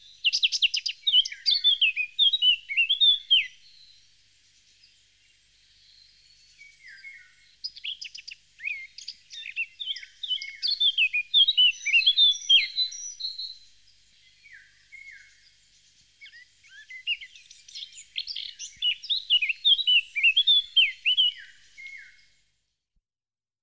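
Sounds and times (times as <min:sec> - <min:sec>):
Eurasian blackcap singing: 0:00.0 - 0:22.4.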